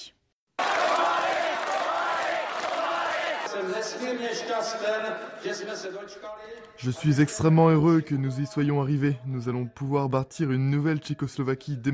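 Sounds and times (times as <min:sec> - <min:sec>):
large crowd roaring in Prague: 0:00.6 - 0:03.8
speech: 0:03.8 - 0:11.9.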